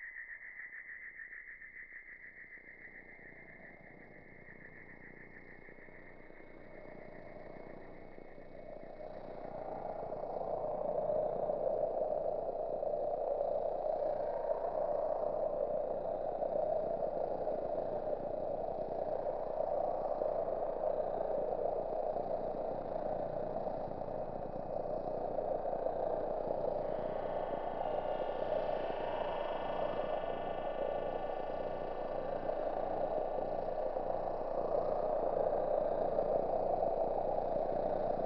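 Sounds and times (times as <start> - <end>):
cicada buzzing at highest intensity: 8.6 - 38.2.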